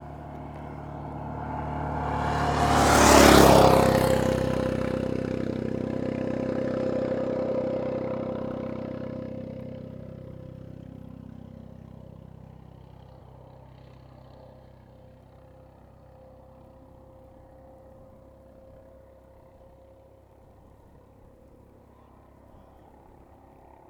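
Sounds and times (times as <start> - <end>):
car passing fast on Estrada de Sao Jorge: 0.0 - 10.0
motorcycle passing fast on Estrada de Sao Jorge: 0.0 - 18.2
wind on Estrada de Sao Jorge: 0.0 - 23.8.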